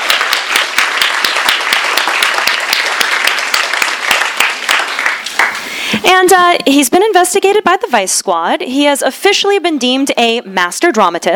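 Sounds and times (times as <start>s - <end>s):
audience clapping: 0.0s - 6.0s
speech: 6.1s - 11.3s.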